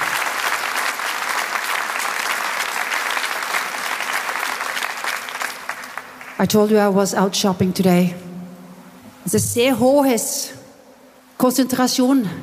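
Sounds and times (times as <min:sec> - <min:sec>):
audience applause: 0:00.0 - 0:06.4
speech: 0:06.4 - 0:08.2, 0:09.3 - 0:10.6, 0:11.4 - 0:12.4.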